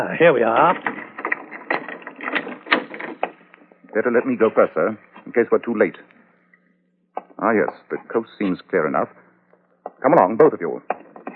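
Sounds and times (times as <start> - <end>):
speech: 0.0 - 0.9, 3.9 - 6.1, 7.4 - 9.2, 9.9 - 11.0
door being unlocked with a key: 0.7 - 3.4.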